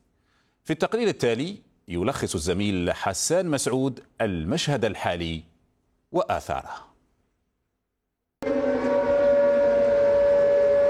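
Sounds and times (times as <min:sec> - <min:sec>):
speech: 0:00.7 - 0:05.5, 0:06.1 - 0:06.9
air raid warning siren wailing: 0:08.4 - 0:10.8.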